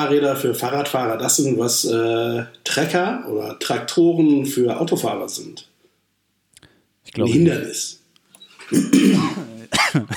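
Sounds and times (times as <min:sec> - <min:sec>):
speech: 0:00.0 - 0:05.7, 0:07.1 - 0:08.0, 0:08.7 - 0:10.1
two people coughing at once: 0:08.7 - 0:10.1.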